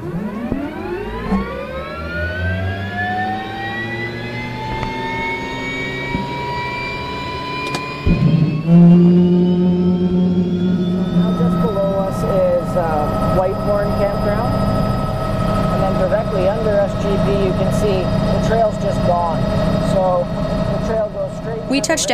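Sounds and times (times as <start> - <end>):
helicopter flying: 0.0 - 22.1
speech: 21.9 - 22.1.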